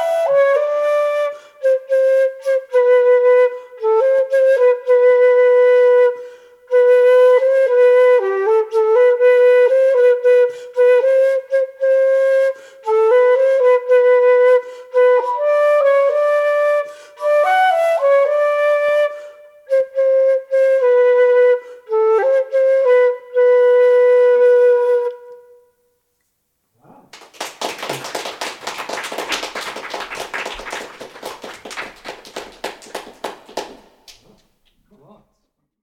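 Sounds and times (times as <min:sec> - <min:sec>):
flute: 0:00.0 - 0:25.9.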